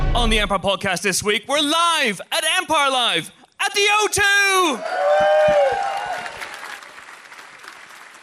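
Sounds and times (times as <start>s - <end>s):
speech: 0.2s - 5.9s
person whooping: 4.6s - 6.4s
live audience applause: 4.8s - 8.2s.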